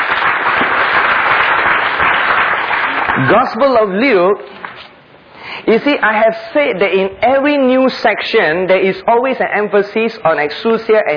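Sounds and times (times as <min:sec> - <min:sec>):
audience clapping applause: 0:00.0 - 0:03.6
speech: 0:03.2 - 0:04.6, 0:05.6 - 0:11.1.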